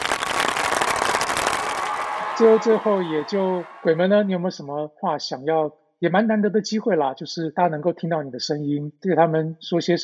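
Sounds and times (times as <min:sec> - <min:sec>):
applause: 0:00.0 - 0:04.4
speech: 0:02.4 - 0:10.0.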